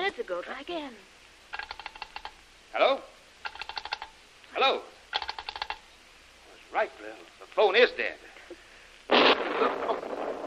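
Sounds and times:
speech: 0:00.1 - 0:01.6, 0:02.8 - 0:03.1, 0:06.8 - 0:08.3
heavy explosion: 0:09.1 - 0:10.4.

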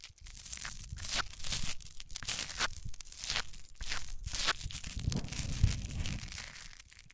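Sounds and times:
microphones rubbed on different surfaces: 0:00.6 - 0:06.9.

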